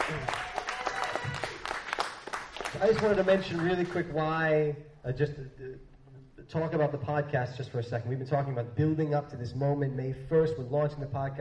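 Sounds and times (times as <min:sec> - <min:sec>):
audience applause: 0:00.0 - 0:04.2
speech: 0:02.8 - 0:05.9, 0:06.5 - 0:11.3.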